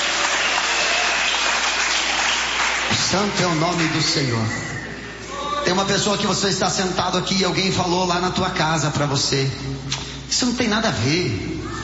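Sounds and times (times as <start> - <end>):
church congregation clapping: 0.0 - 4.5
speech: 3.0 - 4.8, 5.7 - 11.8.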